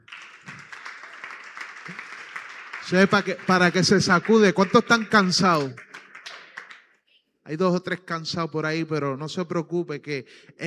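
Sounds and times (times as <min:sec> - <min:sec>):
audience applause: 0:00.0 - 0:06.9
speech: 0:02.9 - 0:05.9, 0:07.5 - 0:10.6.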